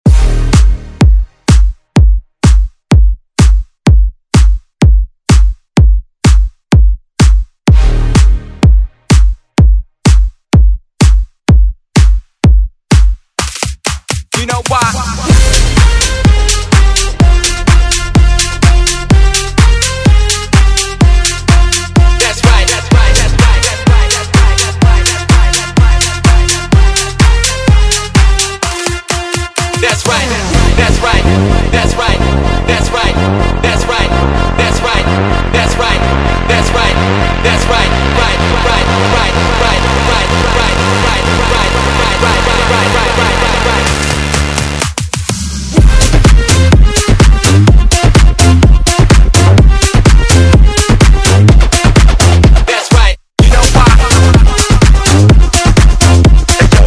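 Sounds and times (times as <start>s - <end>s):
dance music: 0.0s - 56.8s.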